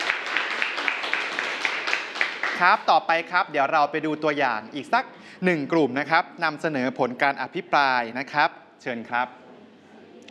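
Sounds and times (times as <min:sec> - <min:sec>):
classmates applauding in a school classroom: 0:00.0 - 0:03.3
speech: 0:02.6 - 0:09.4.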